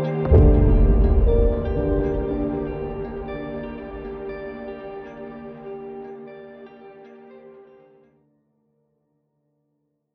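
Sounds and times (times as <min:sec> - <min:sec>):
fairy tale background trailer music: 0:00.2 - 0:05.6.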